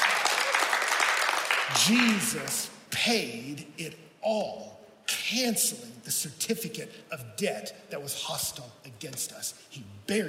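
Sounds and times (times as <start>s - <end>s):
audience clapping: 0.0s - 2.7s
speech: 1.7s - 10.2s.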